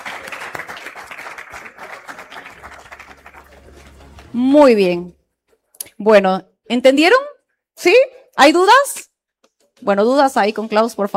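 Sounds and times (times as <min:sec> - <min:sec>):
audience applause: 0:00.0 - 0:04.4
speech: 0:04.3 - 0:05.2, 0:06.0 - 0:09.1, 0:09.8 - 0:11.1.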